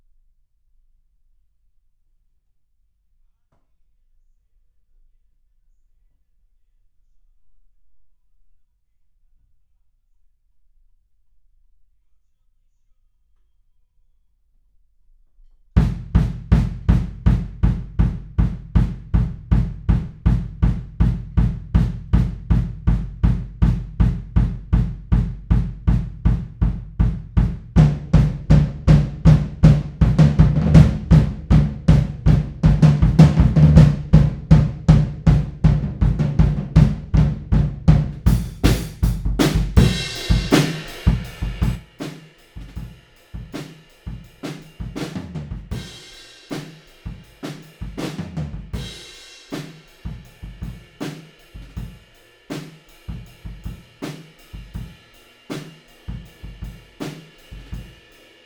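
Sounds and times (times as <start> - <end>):
music: 15.8 - 58.4.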